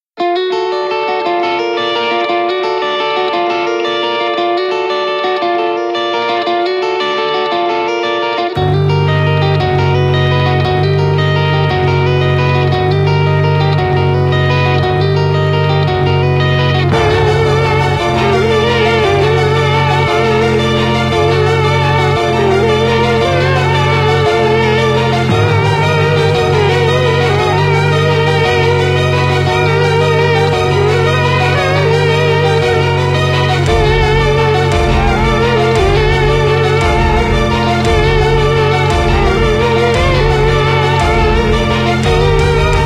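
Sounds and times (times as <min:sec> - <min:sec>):
instrumental music: 0:00.0 - 0:42.8.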